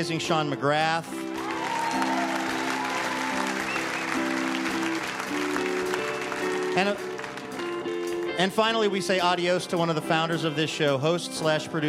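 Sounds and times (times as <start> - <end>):
speech: 0.0 - 1.3, 6.8 - 7.1, 8.4 - 11.8
audience applause: 1.3 - 8.3.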